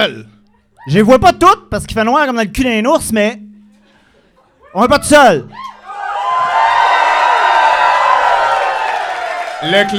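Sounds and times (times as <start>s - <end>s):
speech: 0.0s - 3.5s, 4.7s - 5.8s, 9.6s - 9.9s
live audience of 3000 cheering: 5.5s - 9.9s.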